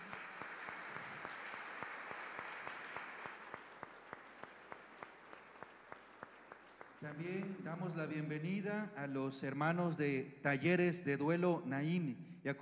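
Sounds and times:
audience applause: 0.0s - 8.0s
speech: 7.0s - 12.6s.

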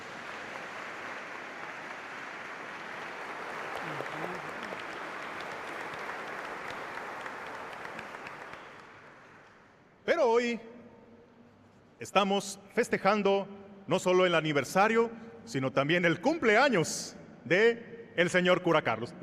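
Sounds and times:
audience applause: 0.0s - 9.7s
speech: 10.2s - 10.7s, 12.0s - 19.2s.

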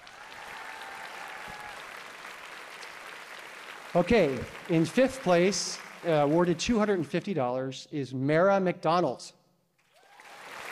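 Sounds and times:
audience applause for honorable mention award winners: 0.0s - 7.0s, 9.8s - 10.7s
speech: 3.9s - 9.4s.

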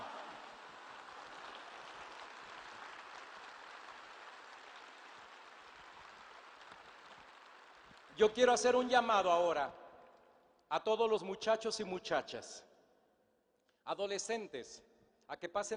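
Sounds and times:
audience applause: 0.0s - 8.2s
speech: 8.2s - 9.8s, 10.7s - 12.7s, 13.8s - 15.7s.

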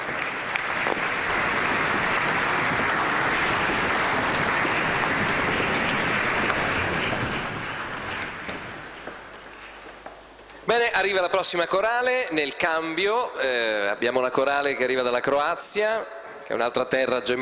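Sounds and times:
audience applause for a choir: 0.0s - 10.0s
speech: 10.7s - 17.4s.

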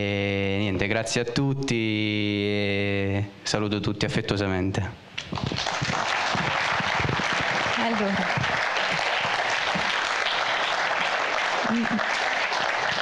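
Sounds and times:
speech: 0.0s - 0.3s, 0.9s - 5.8s, 8.0s - 8.4s
audience applause: 5.2s - 12.9s.

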